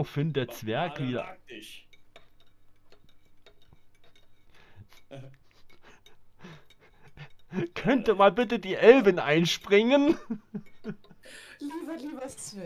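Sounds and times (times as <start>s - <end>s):
speech: 0.0s - 1.9s, 5.1s - 5.4s, 7.2s - 12.6s
spoon stirring coffee in a cup: 1.8s - 11.2s.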